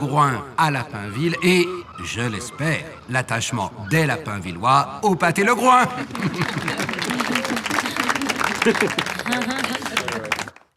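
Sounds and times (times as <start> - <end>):
laughter: 0.0 - 10.7
speech: 0.1 - 7.6, 8.6 - 9.6
audience applause: 5.7 - 10.7.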